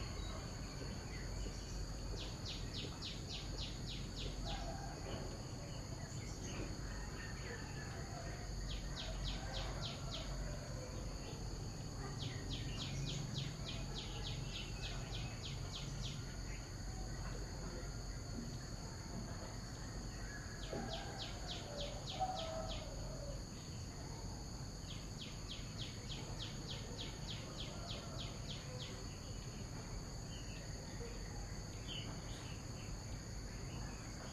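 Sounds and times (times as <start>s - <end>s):
morning ambience in Vietnam: 0.0s - 34.3s.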